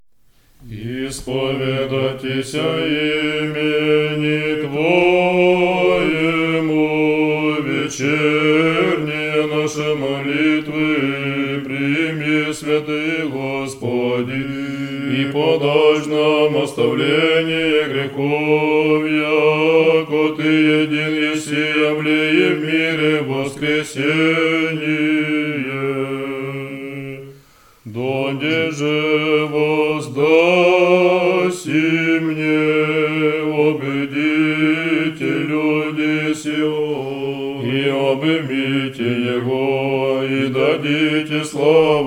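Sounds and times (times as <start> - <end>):
resurrectional tone one: 0.2 - 42.0.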